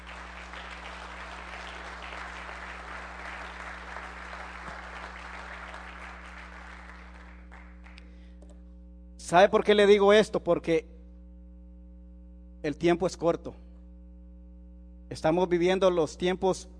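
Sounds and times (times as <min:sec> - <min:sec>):
audience applauding: 0:00.0 - 0:08.0
speech: 0:09.3 - 0:10.9, 0:12.6 - 0:13.6, 0:15.1 - 0:16.7.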